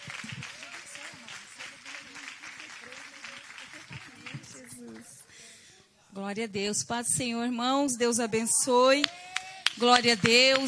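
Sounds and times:
audience applauding: 0.0s - 5.2s, 9.0s - 10.6s
speech: 6.2s - 9.2s, 9.8s - 10.6s.

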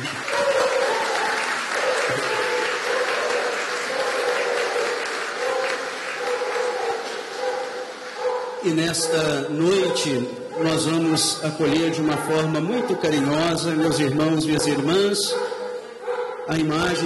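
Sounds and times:
warm round of applause: 0.0s - 8.8s
speech: 8.6s - 15.4s, 16.5s - 17.0s.

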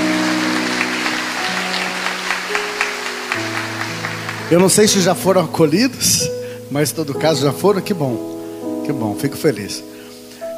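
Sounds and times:
round of applause: 0.0s - 5.4s
speech: 4.5s - 9.9s.

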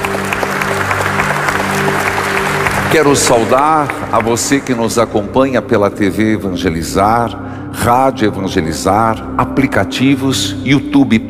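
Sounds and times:
church congregation applauding at a parish Mass: 0.0s - 5.3s
speech: 2.9s - 11.2s.

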